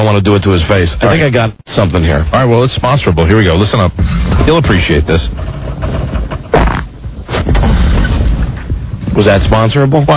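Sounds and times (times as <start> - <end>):
speech: 0.0 - 5.6, 9.2 - 10.1
loud drawn-out fart: 6.5 - 8.3.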